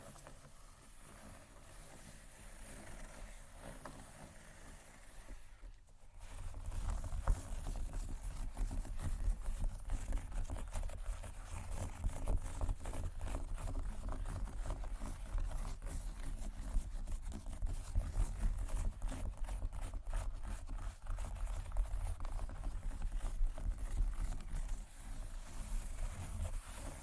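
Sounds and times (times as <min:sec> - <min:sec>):
tapping and scratching on leather bags: 0:06.2 - 0:27.0.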